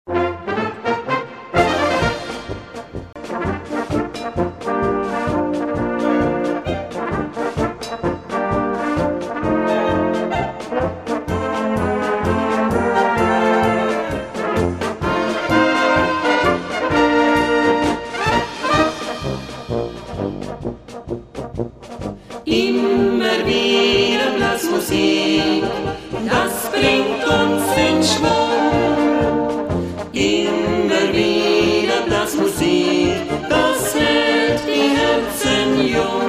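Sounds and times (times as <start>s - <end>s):
brass band music: 0.1s - 36.2s.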